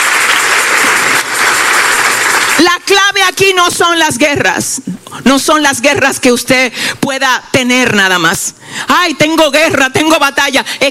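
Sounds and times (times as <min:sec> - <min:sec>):
congregation applauding during a sermon: 0:00.0 - 0:03.0
speech: 0:02.6 - 0:10.8.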